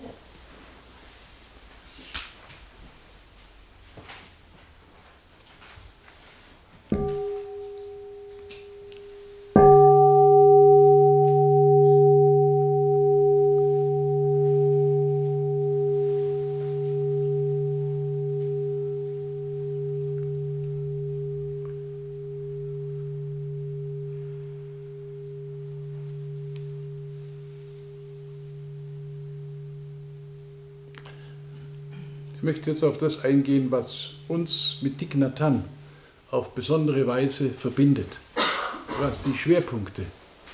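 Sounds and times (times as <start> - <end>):
meditation bell ringing: 6.9 - 36.3
speech: 32.5 - 38.2, 39.0 - 40.2.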